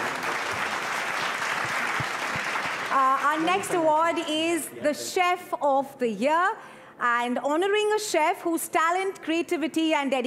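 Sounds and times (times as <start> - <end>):
round of applause for the team of Bukhara: 0.0 - 3.7
speech: 3.0 - 10.2.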